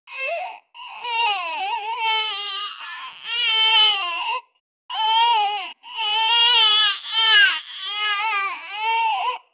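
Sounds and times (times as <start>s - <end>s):
realistic cinematic baby crying: 0.1s - 9.5s.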